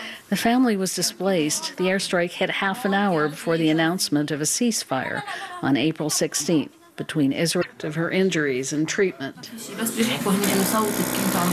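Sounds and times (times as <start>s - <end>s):
speech: 0.3s - 11.5s
vacuum wound dressing machine whirring: 9.8s - 11.5s.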